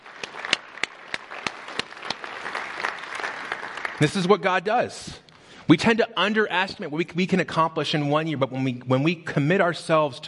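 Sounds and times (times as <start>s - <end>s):
clapping applause: 0.0s - 4.8s
speech: 4.0s - 10.2s.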